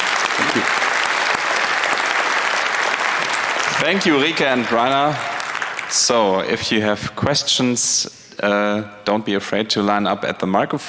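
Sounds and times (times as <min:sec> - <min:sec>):
audience applause: 0:00.0 - 0:06.6
speech: 0:03.8 - 0:05.3, 0:05.9 - 0:10.8.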